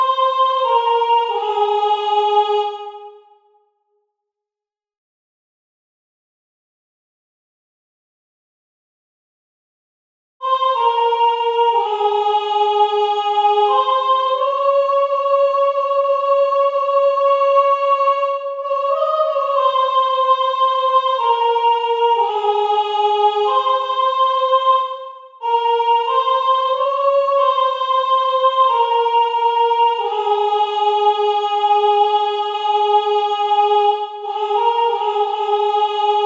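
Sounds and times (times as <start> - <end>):
soprano singing: 0.0 - 3.2, 10.4 - 36.2.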